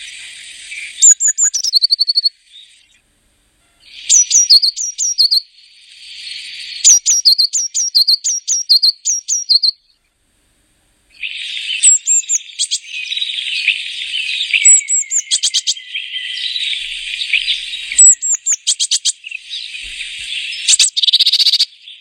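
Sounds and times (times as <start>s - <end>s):
Eurasian blue tit song: 0.0s - 3.0s, 3.6s - 10.0s, 11.1s - 21.9s.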